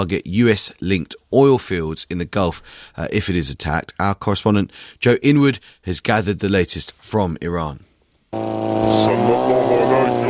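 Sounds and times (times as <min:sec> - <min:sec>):
speech: 0:00.0 - 0:10.2
engine running with a low harmonic drone: 0:08.4 - 0:10.2
distorted voice speaking: 0:08.8 - 0:10.2.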